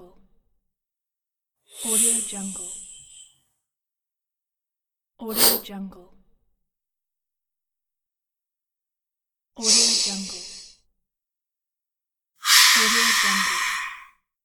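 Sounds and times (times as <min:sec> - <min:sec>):
steam hissing: 0:01.8 - 0:03.3, 0:12.4 - 0:14.1.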